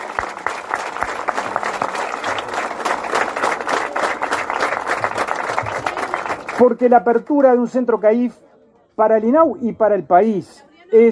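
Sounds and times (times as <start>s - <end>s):
audience applause: 0.0s - 6.8s
speech: 6.6s - 8.4s, 9.0s - 11.1s.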